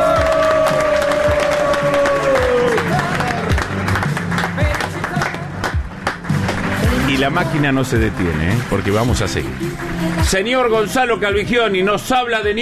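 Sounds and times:
audience applause: 0:00.0 - 0:10.9
crowd cheering: 0:00.0 - 0:10.9
speech: 0:07.2 - 0:12.5.

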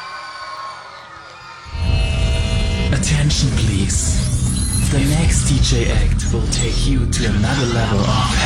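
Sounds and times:
crowd cheering and clapping: 0:00.0 - 0:02.5
steady droning tone: 0:01.7 - 0:08.4
speech: 0:03.0 - 0:04.3, 0:04.9 - 0:08.4.

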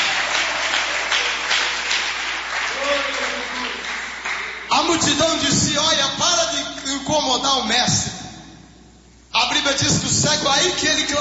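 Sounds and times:
audience clapping: 0:00.0 - 0:05.0
speech: 0:04.8 - 0:08.2, 0:09.4 - 0:11.2.

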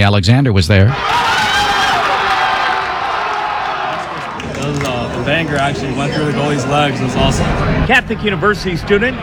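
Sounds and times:
speech: 0:00.0 - 0:01.6, 0:04.7 - 0:09.2
crowd cheering and shouting: 0:00.9 - 0:09.2.

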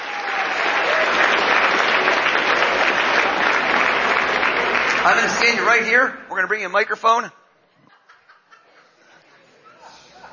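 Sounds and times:
audience applause: 0:00.0 - 0:05.9
speech: 0:05.0 - 0:07.4
laughter: 0:07.6 - 0:10.3.

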